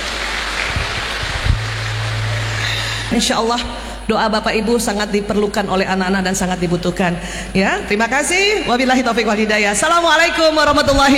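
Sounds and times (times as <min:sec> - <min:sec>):
audience applause: 0:00.0 - 0:03.1
speech: 0:03.1 - 0:11.1.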